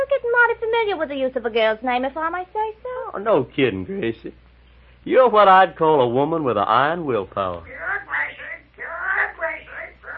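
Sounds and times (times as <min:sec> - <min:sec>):
speech: 0:00.8 - 0:04.4, 0:05.0 - 0:07.8
parrot squawking: 0:07.8 - 0:10.1.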